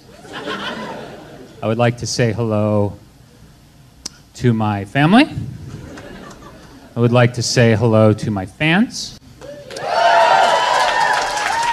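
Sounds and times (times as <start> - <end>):
laughter: 0.0 - 1.6, 5.6 - 7.0
speech: 1.6 - 3.0, 4.4 - 5.6, 7.0 - 9.2
few people applauding: 9.4 - 11.7.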